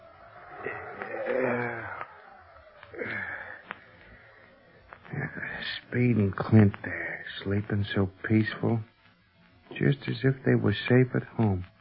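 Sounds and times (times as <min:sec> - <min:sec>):
howling wind: 0:00.0 - 0:04.9
speech: 0:05.8 - 0:08.9, 0:09.8 - 0:11.7.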